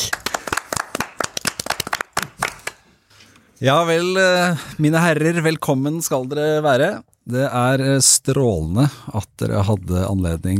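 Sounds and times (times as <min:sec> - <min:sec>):
standing ovation applause: 0:00.0 - 0:02.9
speech: 0:03.6 - 0:10.5.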